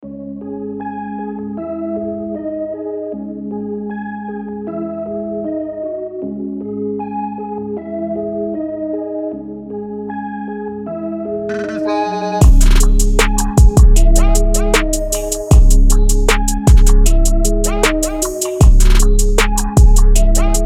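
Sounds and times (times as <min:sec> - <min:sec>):
instrumental music: 0:04.7 - 0:20.6.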